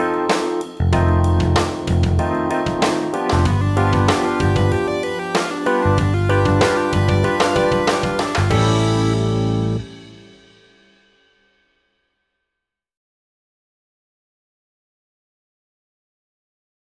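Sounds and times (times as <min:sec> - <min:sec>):
rock backing track: 0:00.0 - 0:10.8.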